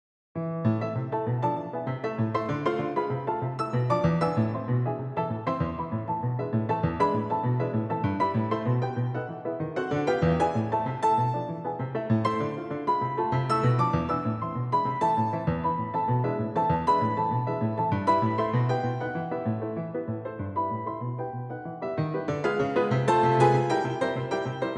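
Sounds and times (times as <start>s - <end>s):
etude in A minor: 0.7s - 24.7s.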